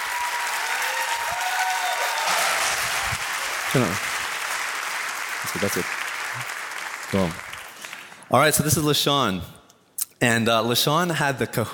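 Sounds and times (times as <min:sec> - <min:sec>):
vocal whoops: 0:00.0 - 0:03.3
audience clapping: 0:00.0 - 0:08.7
speech: 0:03.7 - 0:04.1, 0:05.4 - 0:07.5, 0:08.3 - 0:09.6, 0:10.2 - 0:11.7.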